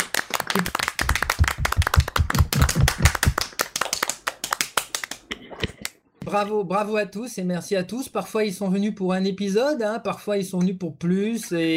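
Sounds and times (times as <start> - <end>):
clapping: 0.0 - 5.2
speech: 6.3 - 11.7.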